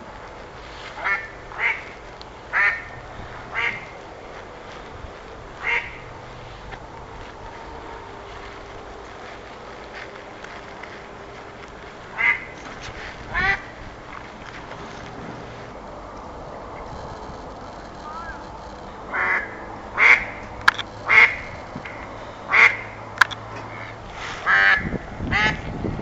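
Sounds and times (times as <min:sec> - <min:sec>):
mallard voice: 0:01.0 - 0:04.0, 0:05.6 - 0:06.0, 0:12.1 - 0:12.6, 0:13.3 - 0:13.7, 0:19.1 - 0:20.4, 0:21.0 - 0:21.6, 0:22.5 - 0:23.0, 0:23.7 - 0:25.6.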